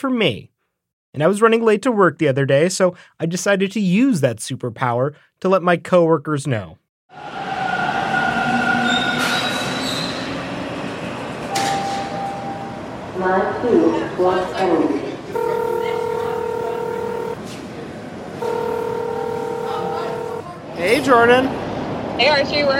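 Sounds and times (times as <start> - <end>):
speech: 0.0 - 0.5, 1.1 - 7.4, 13.2 - 15.0, 20.8 - 21.6, 22.2 - 22.7
subway train rumbling through underground station: 7.1 - 15.5, 17.4 - 18.5, 20.1 - 22.7
sustained electronic tone: 15.4 - 17.4, 18.4 - 20.4.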